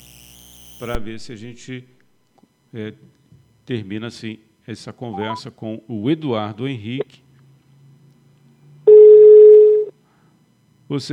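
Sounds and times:
speech: 0.8 - 2.0, 2.7 - 7.2, 10.9 - 11.1
telephone dial tone while redialing a call: 8.9 - 9.9.

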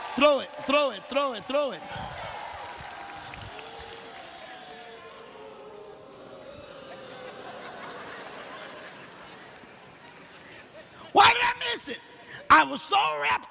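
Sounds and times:
audience clapping: 0.0 - 5.8
speech: 0.2 - 2.2, 11.9 - 13.4
laughter: 5.7 - 11.2.

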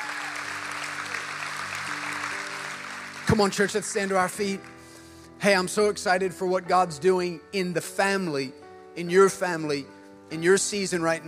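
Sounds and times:
audience applause: 0.0 - 4.8
speech: 3.3 - 4.8, 5.4 - 11.2.

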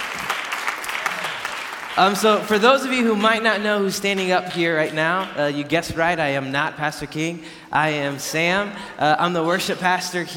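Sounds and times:
audience applause: 0.0 - 4.3
speech: 2.0 - 10.3.

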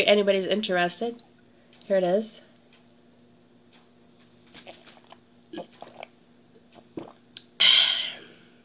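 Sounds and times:
speech: 0.0 - 1.3, 1.9 - 2.4
person swallowing water: 4.5 - 8.1.

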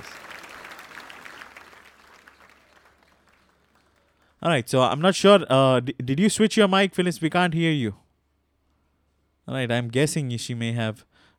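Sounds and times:
applause sound effect: 0.0 - 4.4
speech: 4.4 - 8.0, 9.5 - 11.2.

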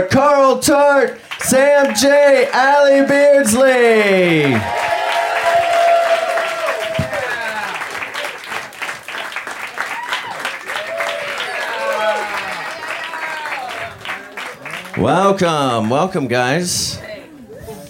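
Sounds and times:
speech: 0.0 - 4.9, 15.0 - 17.1
crowd applauding: 0.9 - 16.2
crowd whooping and cheering: 1.5 - 15.0.

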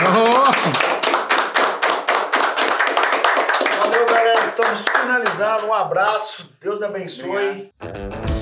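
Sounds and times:
round of applause: 0.0 - 6.2
speech: 5.4 - 8.3.

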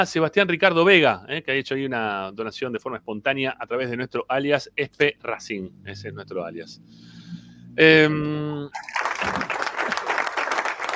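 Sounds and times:
speech: 0.0 - 9.4
applause from a group of people: 8.7 - 10.9.

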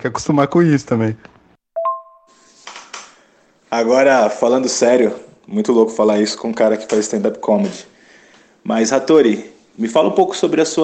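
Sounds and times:
speech: 0.0 - 1.3, 3.7 - 7.9, 8.6 - 10.8
WhatsApp notification chime: 1.8 - 2.4.

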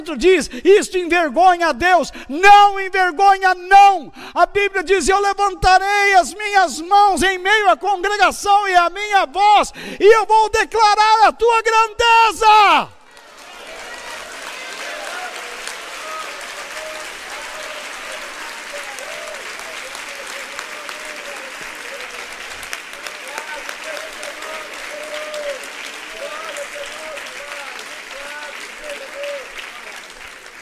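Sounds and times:
speech: 0.0 - 13.0
audience applause: 13.1 - 30.6.

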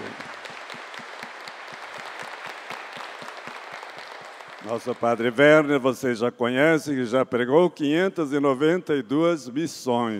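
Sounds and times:
audience applause: 0.0 - 5.6
speech: 4.6 - 10.1.

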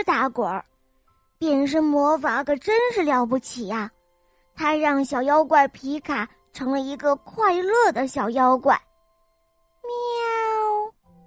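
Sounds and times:
speech: 0.0 - 0.7, 1.4 - 4.0, 4.6 - 8.9, 9.9 - 10.5
small white cat meowing: 9.9 - 11.0.

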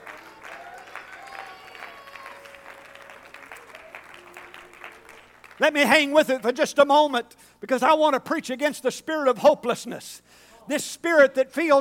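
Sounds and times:
people shouting and cheering: 0.0 - 4.8
large crowd applause: 0.0 - 6.0
speech: 5.6 - 11.7.

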